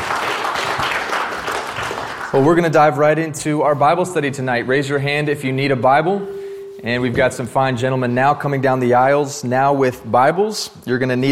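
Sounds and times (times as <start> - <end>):
audience round of applause after worship: 0.0 - 2.4
speech: 2.4 - 11.2.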